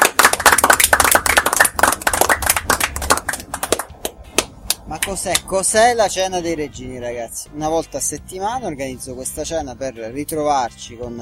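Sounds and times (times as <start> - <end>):
small group applauding at a weekly dinner gathering: 0.0 - 5.5
speech: 5.1 - 11.2.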